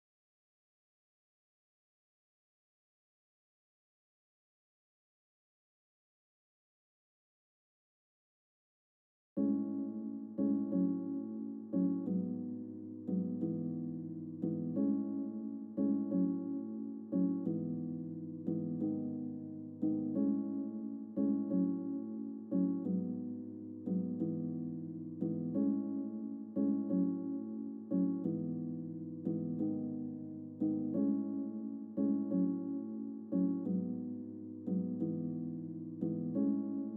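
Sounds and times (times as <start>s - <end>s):
piano: 9.4s - 36.9s.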